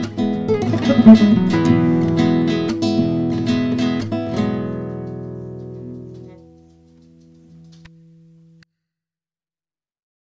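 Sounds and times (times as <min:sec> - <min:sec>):
rumba music: 0:00.1 - 0:06.2.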